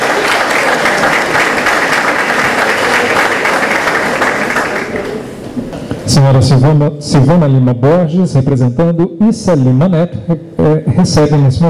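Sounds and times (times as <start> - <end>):
steady applause from a large audience: 0.0 - 5.3
speech: 6.1 - 11.6.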